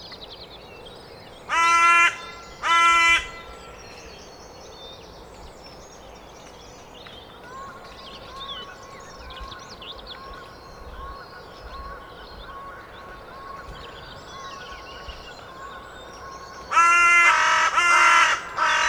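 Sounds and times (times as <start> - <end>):
carrion crow cawing: 1.5 - 3.5, 16.7 - 18.8.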